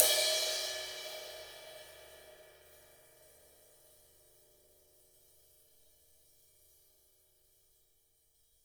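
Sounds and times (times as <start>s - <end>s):
jazz kit ride cymbal on acoustic drums: 0.0s - 2.8s.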